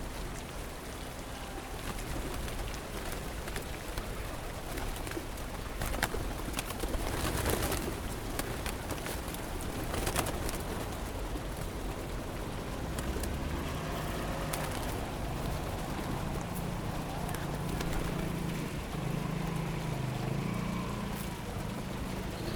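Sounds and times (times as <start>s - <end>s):
traffic hiss and rumble: 0.0s - 22.5s
wind: 0.0s - 22.5s
pigeons cooing in a square in Rome: 1.4s - 22.5s
pigeon wingbeats fluttering: 1.5s - 22.5s.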